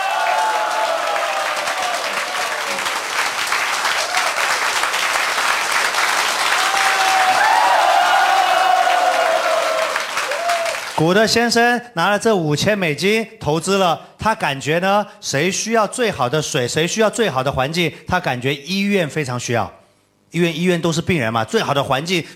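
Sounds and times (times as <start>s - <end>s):
large audience applause: 0.0s - 11.0s
speech: 11.0s - 22.3s.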